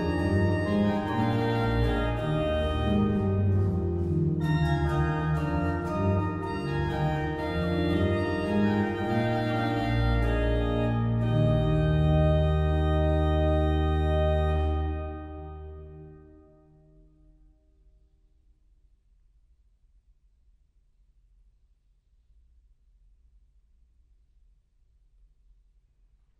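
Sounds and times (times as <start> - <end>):
trumpet piece: 0.0 - 17.1.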